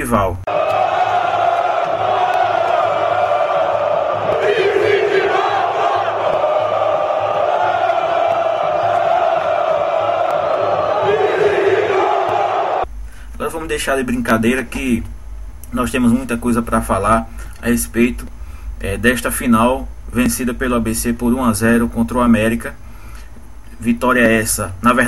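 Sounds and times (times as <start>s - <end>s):
speech: 0.0s - 0.5s, 4.4s - 5.2s, 13.5s - 22.8s, 23.8s - 25.0s
football fans chanting: 0.5s - 12.9s.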